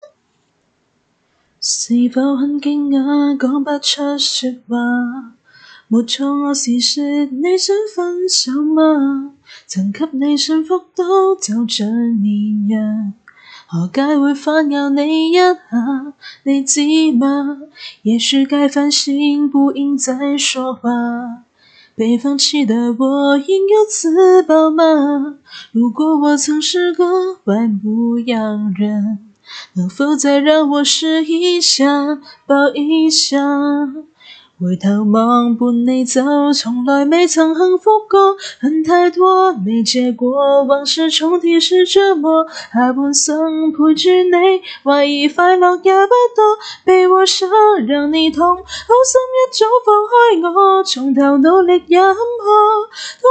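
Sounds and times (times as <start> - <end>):
person singing a cappella: 1.6 - 53.2.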